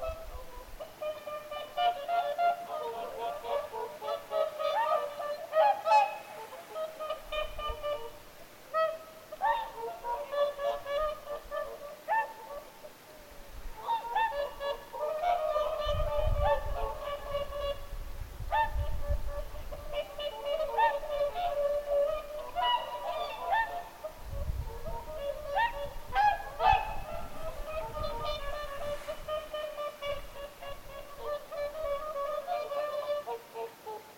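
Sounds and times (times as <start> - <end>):
whooper swans trumpeting honks: 0.0 - 34.1.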